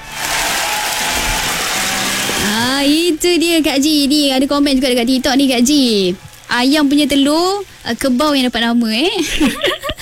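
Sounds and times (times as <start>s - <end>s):
applause for a guest on a Malay radio show: 0.0s - 2.5s
speech: 2.8s - 9.8s
laughter: 9.2s - 10.0s.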